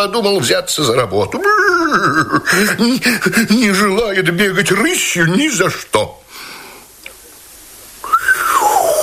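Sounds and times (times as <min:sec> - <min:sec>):
speech: 0:00.0 - 0:06.5
laughter: 0:01.3 - 0:03.1
falling whistle: 0:08.0 - 0:08.9.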